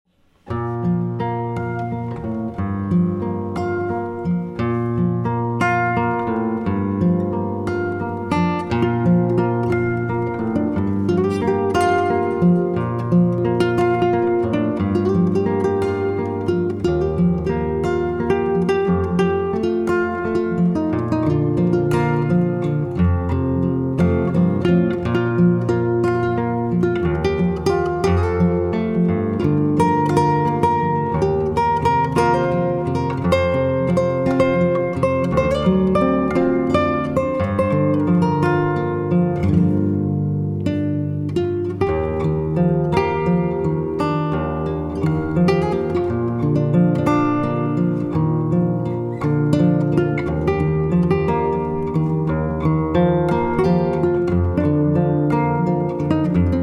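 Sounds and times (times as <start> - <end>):
instrumental music: 0.1 - 56.6.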